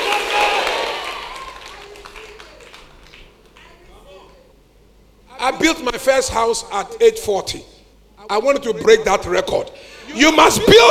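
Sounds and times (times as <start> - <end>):
crowd clapping and cheering in a big space: 0.0 - 3.7
speech: 5.5 - 7.7, 8.3 - 10.9.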